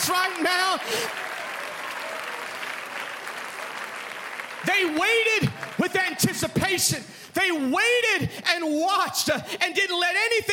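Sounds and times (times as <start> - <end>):
audience clapping hands: 0.0 - 7.0
speech: 0.1 - 1.4, 4.6 - 10.5.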